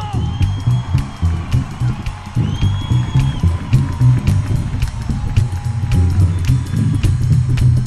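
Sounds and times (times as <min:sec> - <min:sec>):
audience applauding loudly: 0:00.0 - 0:07.7.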